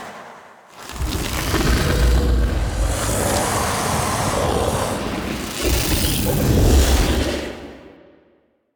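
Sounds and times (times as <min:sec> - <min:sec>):
death metal growl vocals: 0:00.8 - 0:07.8.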